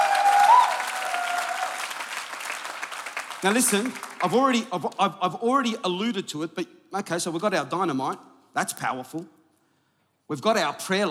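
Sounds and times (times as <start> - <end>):
faint whistle or cheer: 0.0 - 1.8
crowd applause: 0.0 - 4.7
speech: 3.4 - 9.4, 10.3 - 11.0.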